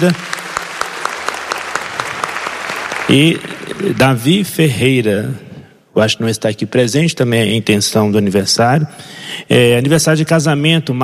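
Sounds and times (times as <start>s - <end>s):
speech: 0.0s - 0.3s, 3.1s - 5.4s, 6.0s - 11.0s
audience applause for a 70th birthday: 0.0s - 4.0s.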